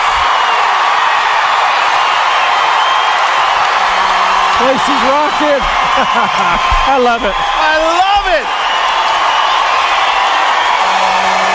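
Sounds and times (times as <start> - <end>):
Navajo Nation arena crowd cheering: 0.0 - 11.5
laughter: 4.5 - 7.3
speech: 4.6 - 8.6.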